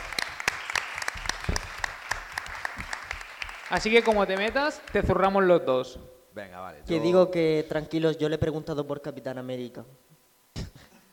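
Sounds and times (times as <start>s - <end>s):
crowd applauding: 0.0s - 5.4s
speech: 3.7s - 10.1s.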